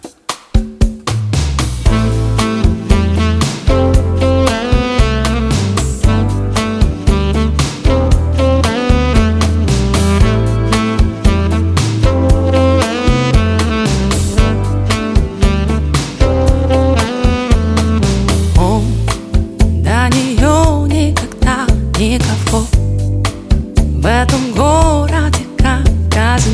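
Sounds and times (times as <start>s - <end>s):
acoustic music: 0.6s - 26.5s.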